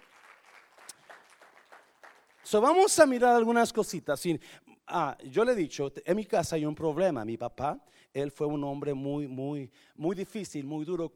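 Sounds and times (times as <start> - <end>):
loud applause: 0.0 - 2.6
speech: 2.5 - 11.1.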